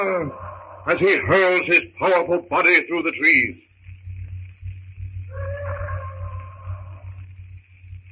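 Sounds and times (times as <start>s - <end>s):
bull ape roaring: 0.0s - 1.2s, 5.3s - 7.2s
speech: 0.0s - 3.7s
low rumble: 0.0s - 8.1s.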